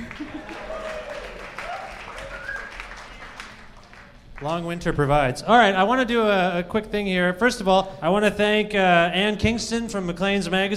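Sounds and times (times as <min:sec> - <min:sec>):
laughter: 0:00.0 - 0:01.4
audience applause at a comedy show: 0:00.0 - 0:04.6
speech: 0:04.4 - 0:10.7.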